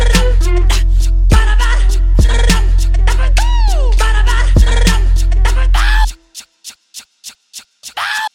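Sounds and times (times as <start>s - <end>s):
Canadian rap: 0.0s - 6.4s.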